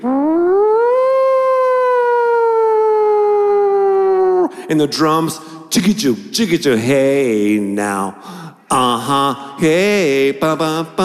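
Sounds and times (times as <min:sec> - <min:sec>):
siren at the start of a song: 0:00.0 - 0:04.4
speech: 0:04.7 - 0:11.0.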